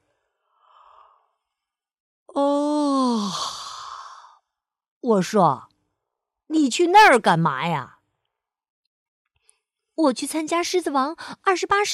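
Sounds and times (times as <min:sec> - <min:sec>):
person acting out a long yawn: 0:02.4 - 0:04.3
speech: 0:05.1 - 0:05.7, 0:06.5 - 0:08.0, 0:10.0 - 0:11.9.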